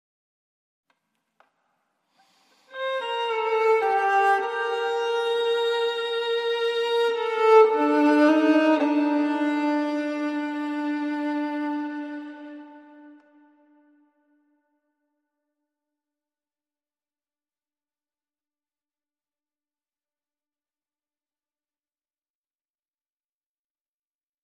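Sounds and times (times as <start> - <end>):
violin: 2.2 - 14.1.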